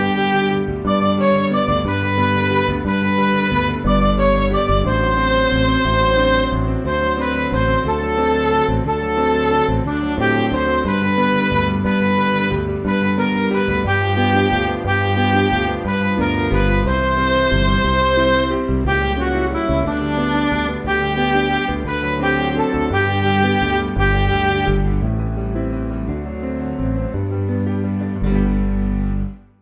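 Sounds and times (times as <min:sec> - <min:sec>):
midi music: 0:00.0 - 0:29.5.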